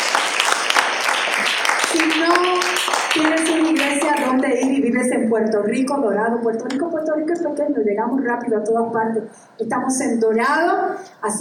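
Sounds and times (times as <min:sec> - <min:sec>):
audience applauding: 0:00.0 - 0:04.5
speech: 0:03.1 - 0:11.3.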